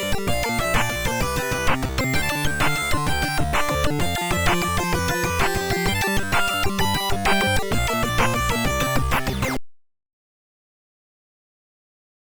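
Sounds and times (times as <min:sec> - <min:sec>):
chiptune remix: 0:00.0 - 0:09.6.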